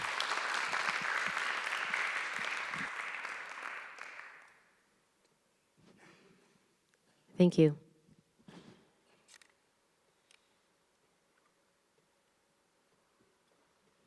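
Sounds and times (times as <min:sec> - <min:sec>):
audience applause from a large audience: 0:00.0 - 0:04.7
speech: 0:07.4 - 0:07.8.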